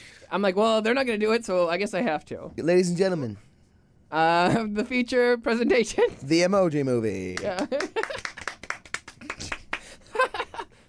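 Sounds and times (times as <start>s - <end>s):
speech: 0.3s - 3.5s, 4.1s - 8.2s
hand clapping: 7.3s - 10.0s.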